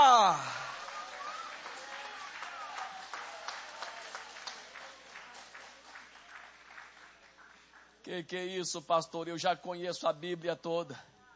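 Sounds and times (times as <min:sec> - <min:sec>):
person exclaiming loudly: 0:00.0 - 0:00.6
audience applauding: 0:00.0 - 0:08.0
speech: 0:08.1 - 0:11.1.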